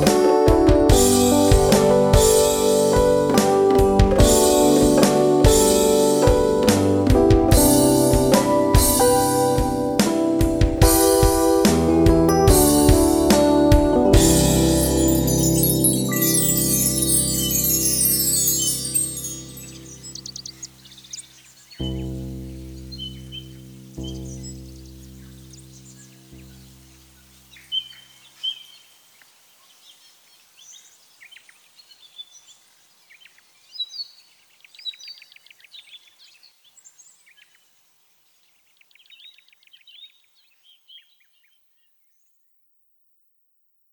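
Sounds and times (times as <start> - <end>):
Rhodes electric piano ambient music: 0.0 - 20.8, 21.8 - 27.3.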